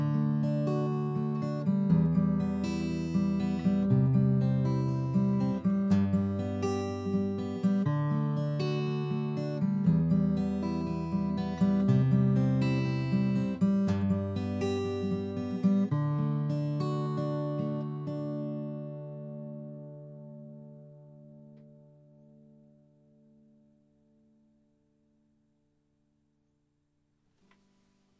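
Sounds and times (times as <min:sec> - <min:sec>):
fingerstyle guitar playing: 0:00.0 - 0:23.5.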